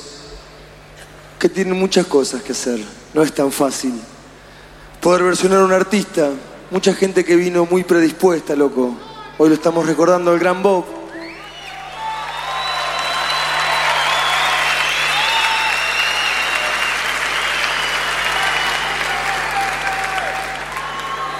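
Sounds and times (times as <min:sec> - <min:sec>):
speech: 0:01.4 - 0:04.2, 0:05.0 - 0:11.0
audience applause: 0:11.4 - 0:21.3.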